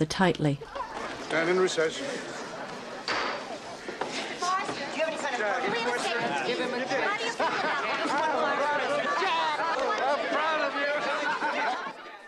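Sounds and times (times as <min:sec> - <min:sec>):
speech: 0:00.0 - 0:02.4
courtroom crowd chatter after a not guilty verdict: 0:00.0 - 0:12.2
laughter: 0:00.6 - 0:12.2.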